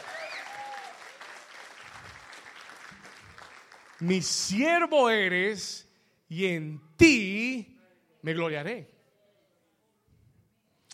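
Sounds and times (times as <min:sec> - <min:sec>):
audience applause: 0:00.0 - 0:04.2
speech: 0:04.0 - 0:08.9.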